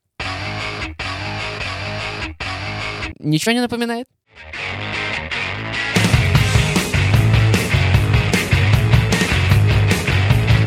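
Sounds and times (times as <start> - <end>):
sampled distorted electric guitar riff: 0.2 - 3.2, 4.3 - 10.6
speech: 3.2 - 4.9.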